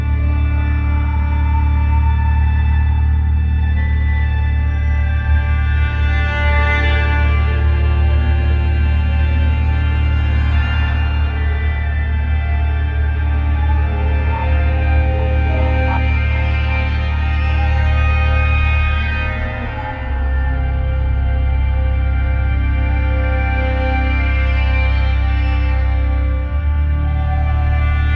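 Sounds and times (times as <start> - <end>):
eerie horror voices: 0.1 - 28.1.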